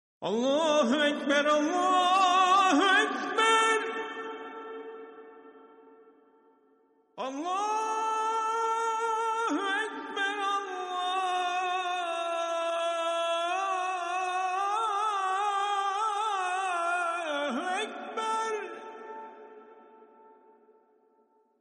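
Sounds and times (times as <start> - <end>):
Turkish azaan call to prayer: 0.2 - 6.4, 7.2 - 20.6.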